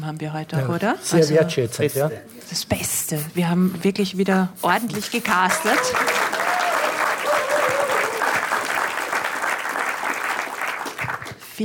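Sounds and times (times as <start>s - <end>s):
speech: 0.0s - 6.3s
audience applause: 5.5s - 11.4s.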